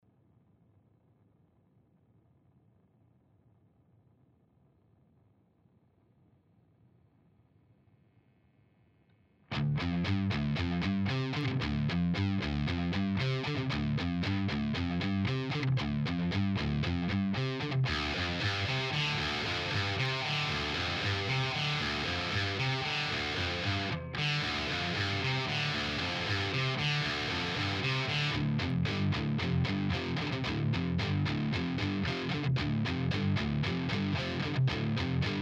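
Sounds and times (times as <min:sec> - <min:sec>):
Mesa Boogie Dual Rectifier amplifier noise: 0:09.5 - 0:35.4.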